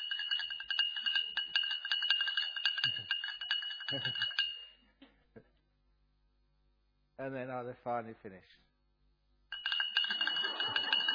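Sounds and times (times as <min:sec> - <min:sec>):
spoon clinking while stirring coffee: 0:00.0 - 0:04.6, 0:09.6 - 0:11.1
speech: 0:03.9 - 0:04.3, 0:07.2 - 0:08.6.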